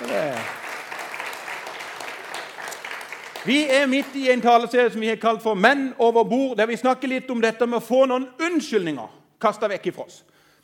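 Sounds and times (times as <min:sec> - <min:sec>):
audience applause: 0:00.0 - 0:04.6
speech: 0:03.4 - 0:10.3.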